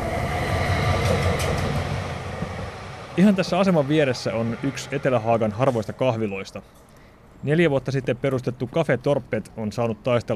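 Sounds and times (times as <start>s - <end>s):
train running through Huopalahti railway station in Helsinki: 0.0s - 6.7s
speech: 3.2s - 10.3s.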